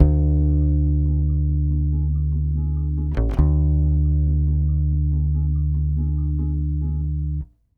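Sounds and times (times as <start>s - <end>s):
Brazil bossa nova bass: 0.0s - 7.5s.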